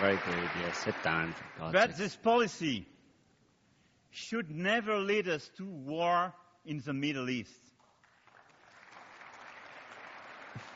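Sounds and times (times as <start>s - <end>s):
hesitant applause in Congress: 0.0s - 1.9s, 7.8s - 10.7s
speech: 0.0s - 2.9s, 4.1s - 7.7s.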